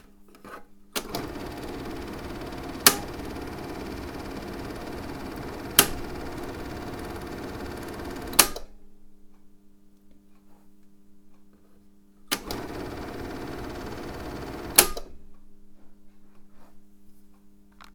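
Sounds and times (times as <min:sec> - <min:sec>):
8mm film projector switches: 0:01.0 - 0:08.8, 0:12.3 - 0:15.2.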